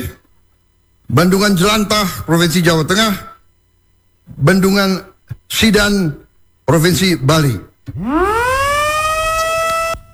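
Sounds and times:
speech: 1.1s - 3.3s, 4.3s - 8.5s
wailing siren at dam inauguration ceremony: 7.9s - 10.1s.

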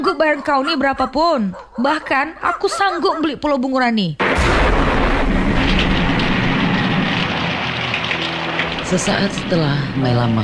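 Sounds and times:
speech: 0.2s - 5.0s, 8.9s - 10.4s
thunder: 4.2s - 9.8s.

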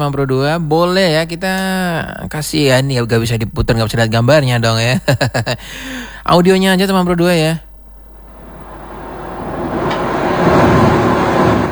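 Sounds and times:
speech: 0.0s - 7.7s
sea water rushing: 8.0s - 11.7s.

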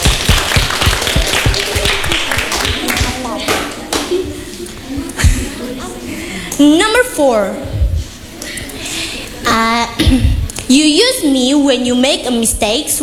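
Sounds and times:
applause: 0.0s - 4.1s
speech: 6.6s - 7.7s, 9.5s - 13.0s.

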